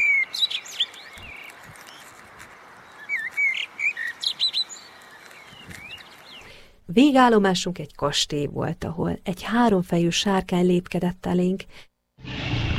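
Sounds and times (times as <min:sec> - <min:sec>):
bird chirping: 0:00.0 - 0:06.5
soft hissing background: 0:00.0 - 0:12.1
speech: 0:06.9 - 0:11.9.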